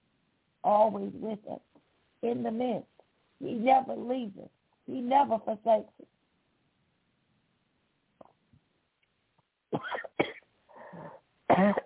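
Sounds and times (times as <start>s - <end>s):
speech: 0.6s - 6.2s
person coughing after tea went down the wrong way: 9.8s - 10.4s, 11.5s - 11.8s
quiet breaths: 10.6s - 11.5s.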